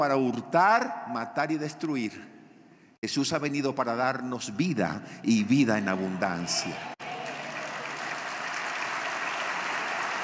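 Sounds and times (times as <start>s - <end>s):
speech: 0.0s - 2.4s, 3.0s - 7.0s
audience applauding: 5.8s - 10.2s.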